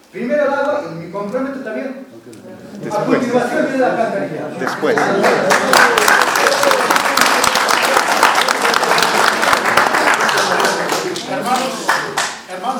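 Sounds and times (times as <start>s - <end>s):
speech: 0.1s - 6.0s
crowd at a neighbourhood assembly in Achocalla applauding: 4.5s - 12.5s.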